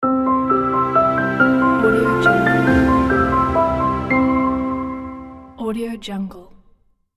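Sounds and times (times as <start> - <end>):
company logo jingle: 0.6 - 5.6.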